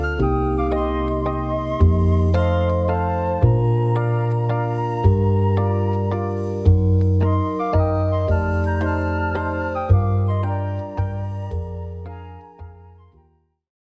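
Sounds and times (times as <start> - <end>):
slow waltz accompaniment without melody: 0.0 - 12.1.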